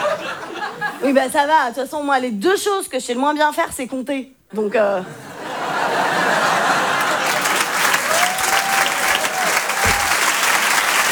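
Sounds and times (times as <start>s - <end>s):
speech: 1.0s - 5.2s
laughter: 5.0s - 10.4s
comedy club audience applauding a comedian: 6.6s - 11.1s.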